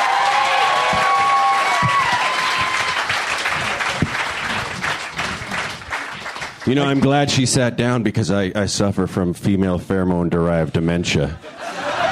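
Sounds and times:
audience applause: 0.0s - 7.2s
speech: 6.7s - 11.6s
laughter: 11.4s - 12.0s.

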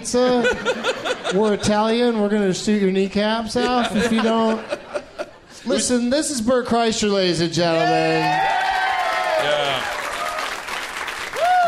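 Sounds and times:
speech: 0.0s - 4.8s, 5.6s - 8.6s
laughter: 0.2s - 2.0s, 3.5s - 5.9s
crowd audience applause: 8.0s - 11.6s.

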